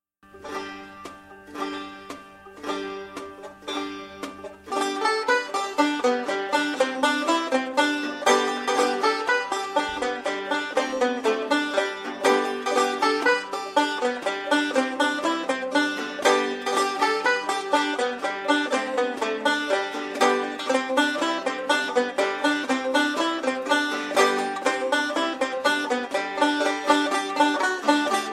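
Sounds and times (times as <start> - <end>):
hollow banjo: 0.2 - 28.3.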